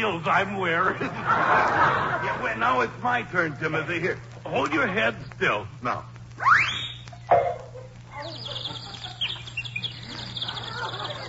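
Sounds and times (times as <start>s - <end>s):
speech: 0.0s - 6.7s
laughter: 0.6s - 3.8s, 8.2s - 11.2s
little bird singing: 8.1s - 11.2s.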